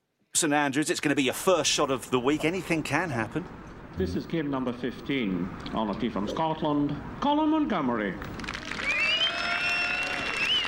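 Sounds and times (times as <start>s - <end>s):
speech: 0.4s - 8.4s
golf crowd cheering at first tee: 8.3s - 10.6s.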